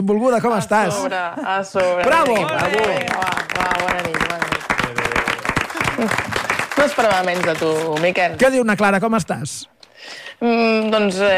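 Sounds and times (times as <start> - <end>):
speech: 0.0 - 11.3
talk show audience clapping to greet a guest: 1.8 - 9.0.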